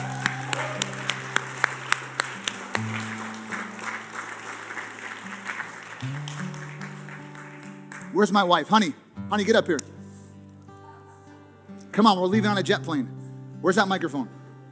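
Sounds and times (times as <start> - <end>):
audience applauding and clapping hands: 0.0 - 8.5
speech: 8.2 - 9.8, 12.0 - 14.4.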